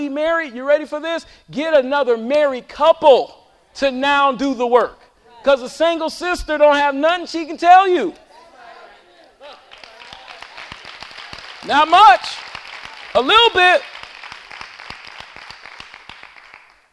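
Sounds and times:
speech: 0:00.0 - 0:08.2, 0:11.6 - 0:12.4, 0:13.2 - 0:13.9
audience clapping: 0:09.5 - 0:16.9.

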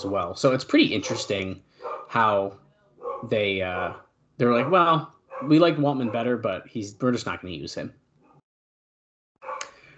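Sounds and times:
speech: 0:00.0 - 0:02.6, 0:03.2 - 0:08.0
dog barking: 0:01.0 - 0:02.3, 0:03.0 - 0:06.4, 0:09.4 - 0:09.8.

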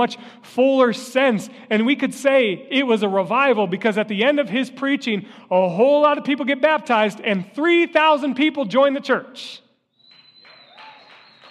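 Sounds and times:
speech: 0:00.0 - 0:09.6
audience clapping: 0:10.0 - 0:11.4.

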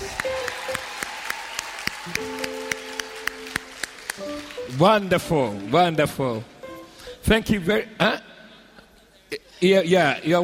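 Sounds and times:
audience clapping in a steady rhythm: 0:00.0 - 0:06.5
speech: 0:04.8 - 0:06.5, 0:07.2 - 0:08.3, 0:09.3 - 0:10.4.

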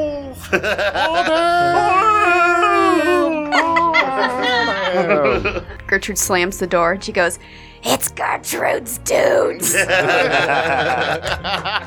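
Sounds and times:
laughter: 0:00.2 - 0:05.8, 0:09.6 - 0:11.8
speech: 0:00.4 - 0:02.4, 0:05.0 - 0:11.8
voice imitating a werewolf howl: 0:01.2 - 0:04.9.

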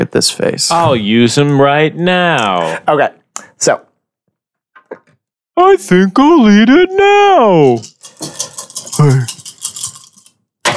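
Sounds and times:
speech: 0:00.0 - 0:03.9, 0:05.6 - 0:09.3
many dice rolling and rattling: 0:07.6 - 0:10.4.

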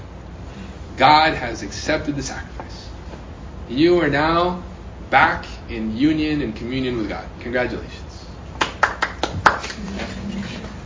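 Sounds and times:
low steady murmur: 0:00.0 - 0:10.8
speech: 0:01.0 - 0:02.9, 0:03.7 - 0:08.0
audience applause: 0:08.6 - 0:10.1.

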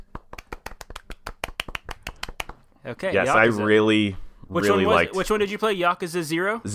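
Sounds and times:
golf clap: 0:00.0 - 0:02.8
speech: 0:02.8 - 0:06.7.

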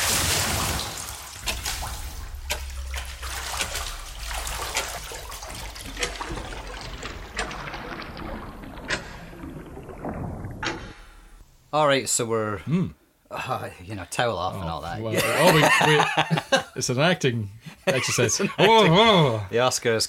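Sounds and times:
swimming water strokes sound effect: 0:00.0 - 0:11.4
speech: 0:11.7 - 0:20.0
laughter: 0:15.1 - 0:16.8, 0:17.7 - 0:19.4.

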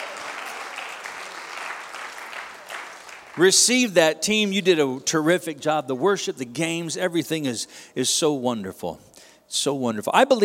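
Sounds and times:
church congregation clapping for the team: 0:00.0 - 0:03.5
speech: 0:03.4 - 0:10.4.

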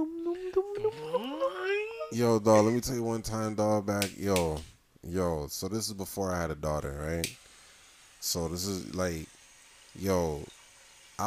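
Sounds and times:
voice imitating flashback music effect: 0:00.0 - 0:02.2
speech: 0:02.1 - 0:07.4, 0:08.2 - 0:09.2, 0:10.0 - 0:10.6.

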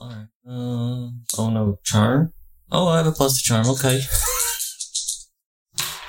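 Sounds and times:
speech: 0:00.5 - 0:04.4
dice rattling: 0:03.6 - 0:05.2.

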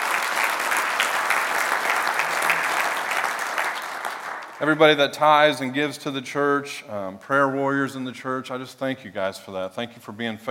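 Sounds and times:
audience applause for volunteers: 0:00.0 - 0:04.8
speech: 0:04.6 - 0:10.4.

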